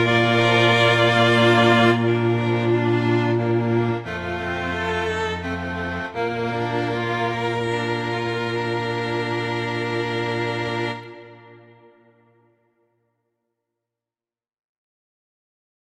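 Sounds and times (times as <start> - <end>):
string quartet playing a Christmas carol: 0.0 - 12.2.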